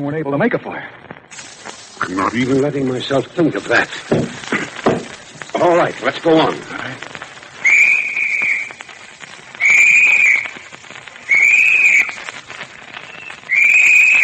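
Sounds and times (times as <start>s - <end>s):
speech: 0.0s - 4.4s, 5.6s - 7.1s
whistle blasts as a signal: 7.6s - 8.8s, 9.6s - 10.6s, 11.2s - 12.3s, 13.0s - 14.2s.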